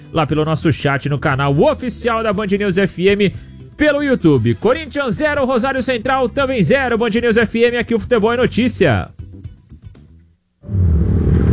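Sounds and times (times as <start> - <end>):
speech: 0.1 - 9.2
motorcycle passing by: 10.6 - 11.5.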